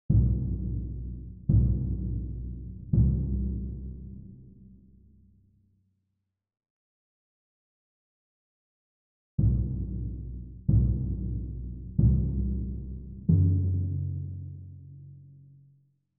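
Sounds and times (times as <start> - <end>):
timpani: 0.1 - 4.6, 9.4 - 15.1.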